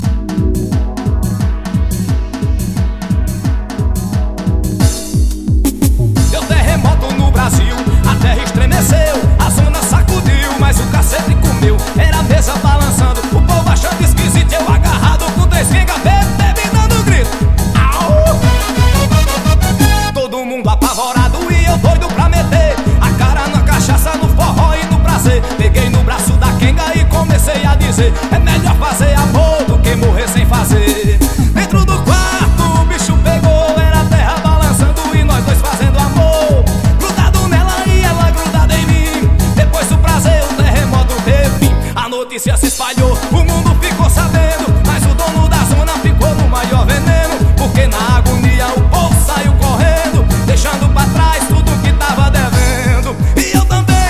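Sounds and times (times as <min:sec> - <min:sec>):
forró dance music: 0:00.0 - 0:54.0.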